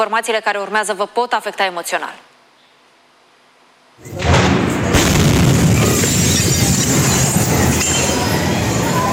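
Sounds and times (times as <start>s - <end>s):
speech: 0.0s - 2.3s, 4.0s - 5.1s
explosion at a military pyrotechnics depot: 4.1s - 9.0s.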